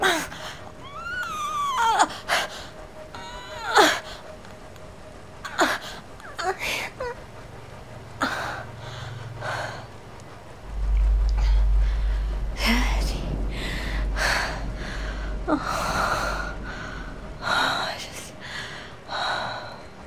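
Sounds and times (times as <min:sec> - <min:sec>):
soundscape rain: 0:00.0 - 0:20.0.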